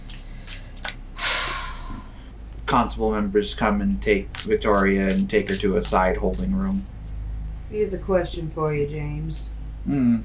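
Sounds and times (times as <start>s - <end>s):
playing cards being shuffled: 0.0s - 1.0s, 4.2s - 6.8s
speech: 2.7s - 7.0s, 7.7s - 10.2s.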